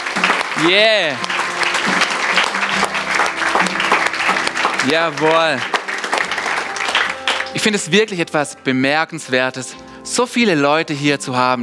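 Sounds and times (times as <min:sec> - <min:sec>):
crowd applause: 0:00.0 - 0:07.8
speech: 0:00.6 - 0:02.0, 0:04.8 - 0:05.7, 0:07.6 - 0:11.6.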